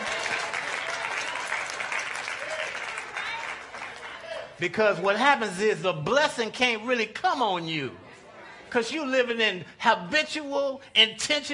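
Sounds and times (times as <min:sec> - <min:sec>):
audience applause: 0:00.0 - 0:04.5
speech: 0:04.6 - 0:08.0, 0:08.7 - 0:11.5.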